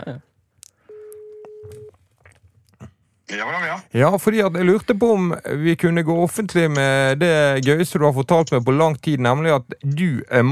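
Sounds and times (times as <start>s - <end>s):
speech: 0.1s - 0.3s, 3.3s - 10.5s
telephone ringing tone: 0.9s - 1.9s
short voice fragments: 3.3s - 10.5s.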